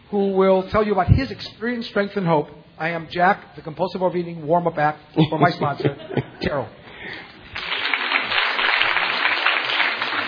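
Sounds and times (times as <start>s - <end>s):
speech: 0.1s - 7.3s
crowd applause: 7.5s - 10.2s.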